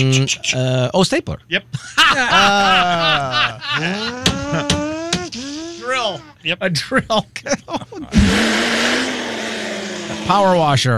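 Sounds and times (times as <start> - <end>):
speech: 0.0 - 4.9, 6.0 - 9.2, 10.1 - 10.9
laughter: 1.7 - 8.5
voice imitating a leaf blower: 2.2 - 6.4, 8.0 - 10.6.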